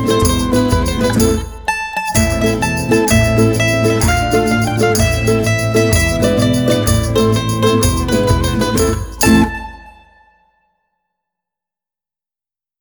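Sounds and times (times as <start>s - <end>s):
Neapolitan tarantella on mandolin: 0.0s - 10.2s.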